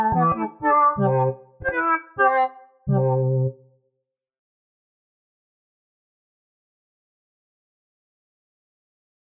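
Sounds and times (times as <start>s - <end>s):
String Studio VS3 synthesized strings: 0.0s - 3.5s.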